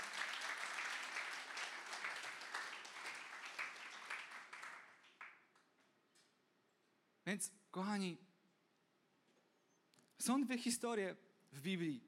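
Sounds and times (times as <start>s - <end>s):
audience applause: 0.0s - 5.4s
speech: 7.3s - 8.3s, 10.3s - 12.0s.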